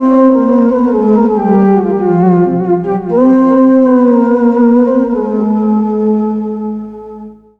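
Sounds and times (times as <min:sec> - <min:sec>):
Arabic synth: 0:00.0 - 0:07.5.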